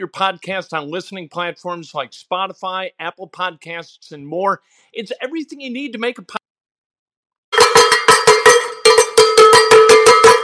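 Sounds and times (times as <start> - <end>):
speech: 0.0 - 6.4
cowbell clanking: 7.5 - 10.4.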